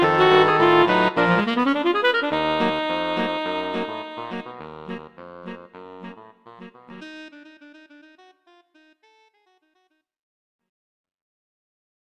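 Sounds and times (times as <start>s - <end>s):
saxophone quartet playing a prelude: 0.0s - 9.3s.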